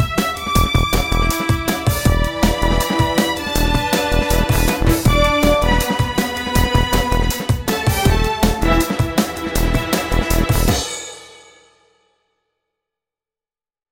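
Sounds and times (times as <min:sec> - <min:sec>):
violins: 0:00.0 - 0:10.8
drum and bass beat: 0:00.0 - 0:11.2.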